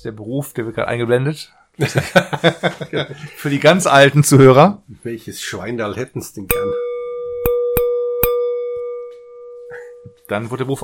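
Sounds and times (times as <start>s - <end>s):
speech: 0.0s - 6.8s, 10.3s - 10.8s
laughter: 1.8s - 3.4s
glass ringing: 6.5s - 10.3s.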